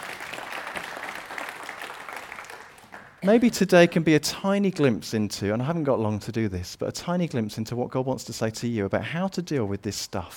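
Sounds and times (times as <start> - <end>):
audience applause: 0.0 - 3.2
speech: 3.2 - 10.3.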